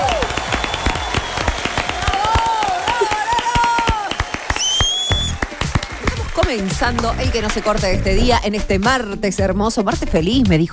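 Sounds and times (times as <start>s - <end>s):
audience applause and cheering: 0.0s - 8.5s
speech: 6.5s - 10.7s.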